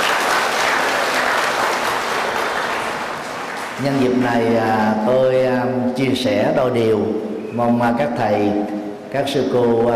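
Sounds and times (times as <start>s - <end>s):
loud audience applause: 0.0s - 4.2s
speech: 3.8s - 9.9s.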